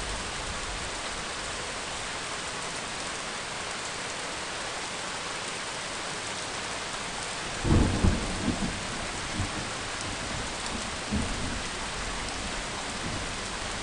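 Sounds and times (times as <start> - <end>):
rain: 0.0 - 13.8
thunder: 7.6 - 11.6.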